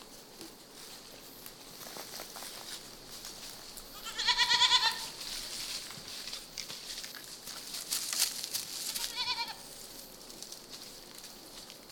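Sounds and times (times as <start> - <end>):
goat bleating: 3.9 - 5.2, 8.9 - 9.7.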